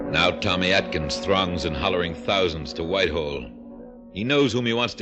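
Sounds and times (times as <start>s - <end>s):
ships hooting in the harbor of Liverpool and Merseyside and Hull: 0.1s - 3.4s
speech: 0.4s - 3.6s, 4.1s - 5.0s.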